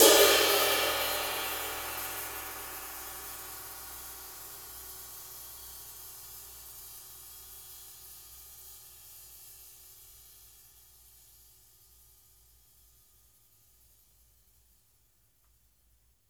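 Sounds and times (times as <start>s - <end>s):
sizzle crash cymbals: 0.0s - 4.5s.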